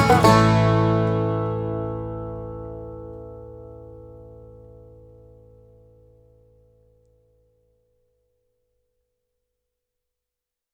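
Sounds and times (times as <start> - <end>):
melodic banjo playing along: 0.0 - 5.3.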